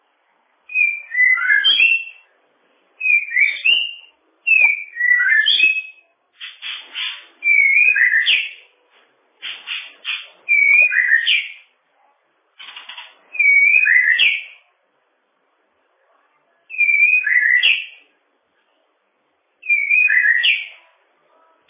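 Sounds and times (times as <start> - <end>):
bird whistling song: 0.7 - 2.3, 3.0 - 8.6, 9.4 - 11.7, 13.3 - 14.6, 16.7 - 18.0, 19.6 - 20.8.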